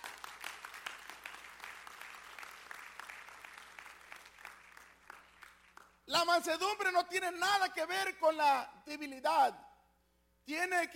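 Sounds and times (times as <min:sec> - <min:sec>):
audience applause: 0:00.0 - 0:05.9
speech: 0:06.1 - 0:09.6, 0:10.5 - 0:10.9.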